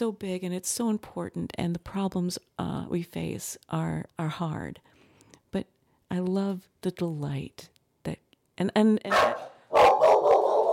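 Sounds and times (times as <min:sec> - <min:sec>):
speech: 0:00.0 - 0:04.9, 0:05.5 - 0:09.8
dog barking at a squirrel outside a window: 0:09.1 - 0:10.7.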